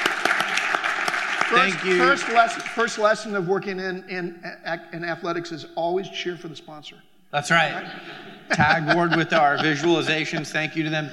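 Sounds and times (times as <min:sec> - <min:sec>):
audience applause: 0:00.0 - 0:03.0
speech: 0:01.5 - 0:11.1
laughter: 0:07.7 - 0:11.1.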